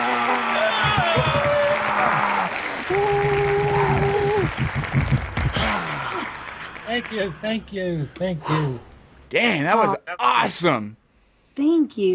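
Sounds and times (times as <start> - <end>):
whoops and cheering voices: 0.0 - 4.6, 5.5 - 6.6
loud standing ovation crowd applause: 0.0 - 7.8
speech: 7.0 - 11.0, 11.6 - 12.1.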